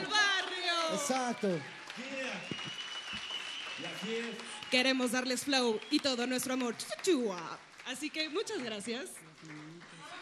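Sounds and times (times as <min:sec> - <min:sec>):
people calling out and cheering: 0:00.0 - 0:06.8
audience applause: 0:00.0 - 0:10.2
speech: 0:00.9 - 0:02.6, 0:03.8 - 0:09.9.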